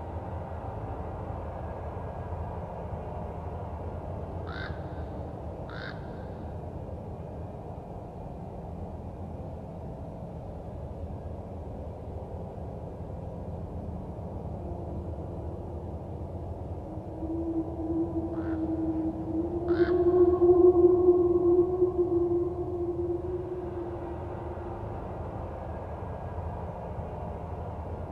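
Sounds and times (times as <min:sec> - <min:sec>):
forest ambience: 0:04.4 - 0:06.9, 0:13.8 - 0:27.2.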